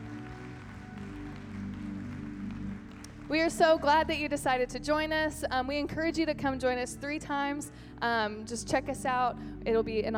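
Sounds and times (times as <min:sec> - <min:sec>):
audience clapping: 0:00.0 - 0:04.4
sustained low organ or keyboard chords: 0:00.0 - 0:10.1
speech: 0:03.3 - 0:10.1.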